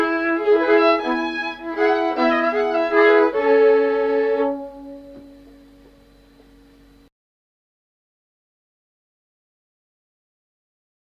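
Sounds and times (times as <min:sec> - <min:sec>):
waltz music: 0:00.0 - 0:05.8.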